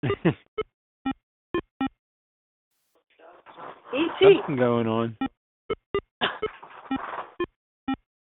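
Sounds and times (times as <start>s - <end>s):
video game beeps from a phone: 0.0s - 0.4s, 6.4s - 8.0s
speech: 0.0s - 0.5s, 3.9s - 5.8s.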